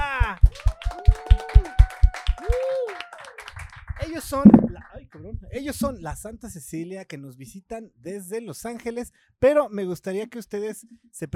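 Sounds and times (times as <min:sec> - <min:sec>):
audience applause for guests: 0:00.0 - 0:04.9
speech: 0:04.2 - 0:11.3.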